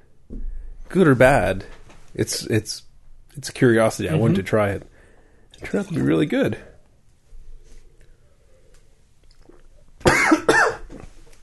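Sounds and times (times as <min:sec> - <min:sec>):
speech: 0:00.9 - 0:04.9, 0:05.6 - 0:06.7
person coughing after a sip of Woodchuck pumpkin cider went down the wrong pipe: 0:10.0 - 0:11.0.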